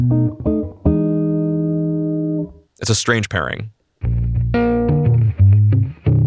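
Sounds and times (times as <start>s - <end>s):
speech: 0.0s - 0.5s, 2.8s - 3.8s
electric guitar with humbucker pickup and flatwound strings playing: 0.0s - 2.6s, 4.0s - 6.2s.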